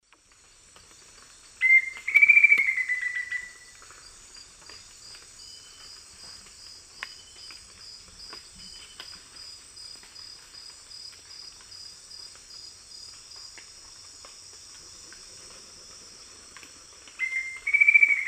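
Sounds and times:
black-faced antthrush song in eastern lowlands of South America: 0:01.6 - 0:03.7, 0:17.2 - 0:18.2.

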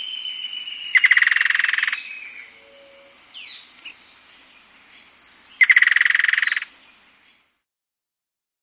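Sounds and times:
Black-and-white antbird calling in South America: 0:00.0 - 0:04.6, 0:05.4 - 0:06.9.

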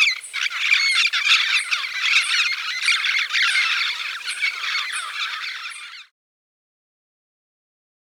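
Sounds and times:
Scaly-naped Amazon calling in Ecuador: 0:00.0 - 0:06.0.

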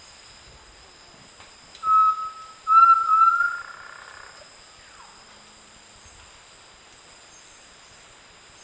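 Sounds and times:
undulated tinamou Crypturellus undulatus whistled song in South America: 0:01.8 - 0:03.6.

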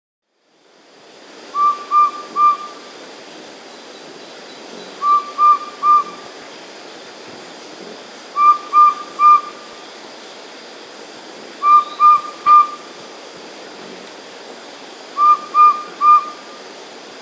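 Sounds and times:
subtropical pygmy owl whistled call in South America: 0:01.5 - 0:03.0, 0:04.8 - 0:06.4, 0:08.3 - 0:09.8, 0:11.6 - 0:12.9, 0:15.2 - 0:16.7.

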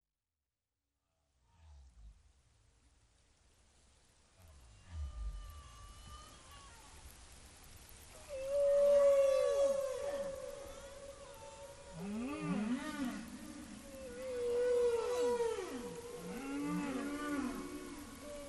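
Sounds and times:
humpback whale song with whoops, moans and downward glides: 0:04.6 - 0:07.0, 0:08.2 - 0:18.4.

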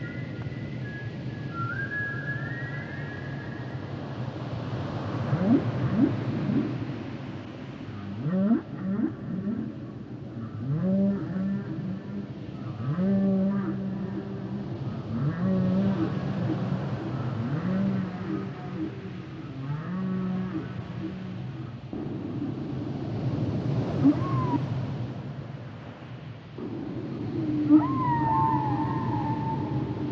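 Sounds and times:
whale song: 0:00.0 - 0:04.2, 0:05.2 - 0:07.0, 0:08.1 - 0:25.4, 0:26.6 - 0:30.0
low rumbling noise: 0:08.0 - 0:30.0.

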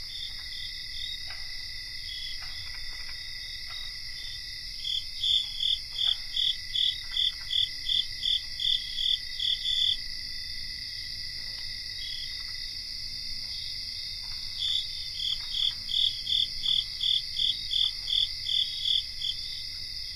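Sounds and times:
North American cricket chorus: 0:00.0 - 0:20.1.

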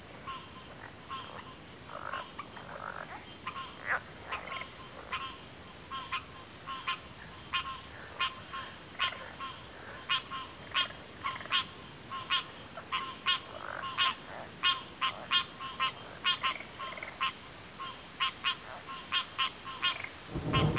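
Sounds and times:
crickets trilling: 0:00.0 - 0:20.7.

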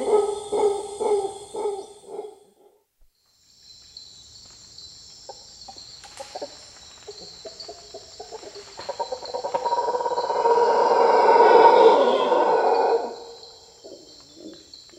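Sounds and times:
Mantled howler monkey howls in South American rainforest: 0:00.0 - 0:02.8, 0:09.1 - 0:14.7.

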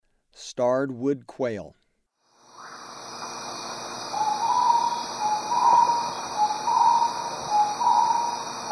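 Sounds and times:
starred wood quail whistling two-part phrases in Ecuador: 0:02.6 - 0:08.7.

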